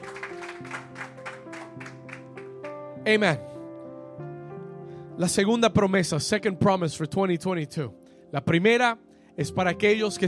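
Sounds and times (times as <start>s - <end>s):
audience applause: 0.0s - 2.6s
speech: 3.1s - 3.5s, 5.2s - 10.2s.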